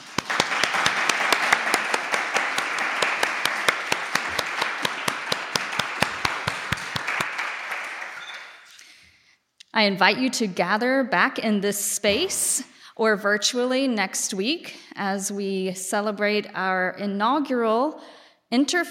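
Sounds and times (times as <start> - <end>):
audience applause: 0.0 - 8.7
speech: 9.8 - 18.8.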